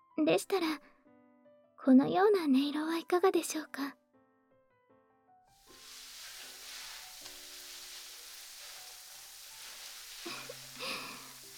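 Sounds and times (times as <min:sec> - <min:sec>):
speech: 0:00.2 - 0:00.9, 0:01.8 - 0:04.0
rustling: 0:05.6 - 0:11.5
fine foam bubbles popping on scalp: 0:05.7 - 0:11.5.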